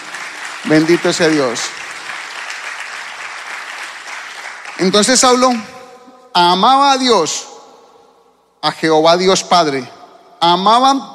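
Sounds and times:
audience clapping hands: 0.0 - 5.8
speech: 0.6 - 1.8, 4.8 - 5.8, 6.4 - 7.5, 8.6 - 11.1.

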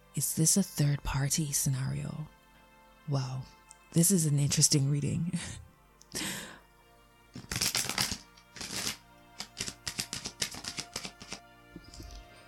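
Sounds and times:
speech: 0.2 - 2.4, 3.1 - 6.4
cards drawn and handled from a Romance Angels oracle deck: 7.4 - 11.4.

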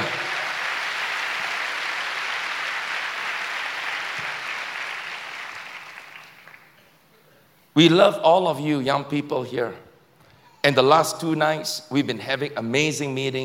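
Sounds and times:
audience clapping: 0.0 - 6.9
speech: 7.8 - 9.8, 10.6 - 13.4.

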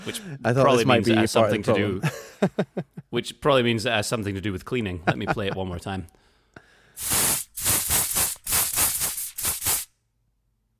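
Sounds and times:
speech: 0.0 - 6.2, 7.0 - 7.3
aerosol spray can spraying: 7.0 - 9.9.

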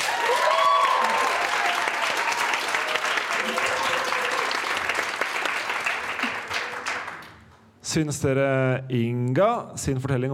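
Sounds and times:
live audience applause: 0.0 - 7.5
speech: 7.9 - 10.3.

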